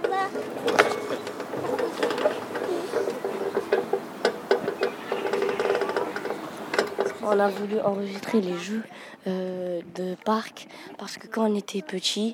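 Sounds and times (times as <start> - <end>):
swing post creaking: 0.0 - 8.4
speech: 7.3 - 12.3.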